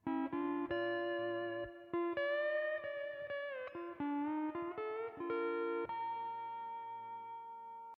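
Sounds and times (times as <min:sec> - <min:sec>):
Hawaiian music piece: 0:00.0 - 0:06.8.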